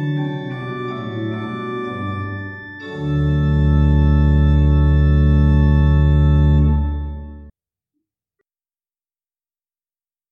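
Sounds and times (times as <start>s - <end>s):
pipe organ: 0.0s - 7.5s.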